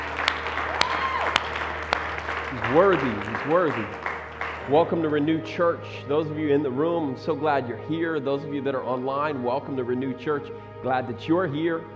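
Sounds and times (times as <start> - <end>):
audience applause: 0.0 - 5.1
speech: 2.6 - 4.1, 4.7 - 11.9.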